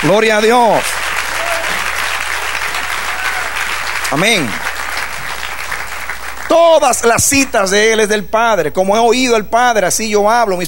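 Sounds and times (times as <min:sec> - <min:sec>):
speech: 0:00.0 - 0:01.0, 0:04.1 - 0:04.6, 0:06.5 - 0:10.6
church congregation applause during a Spanish-language service: 0:00.0 - 0:07.2.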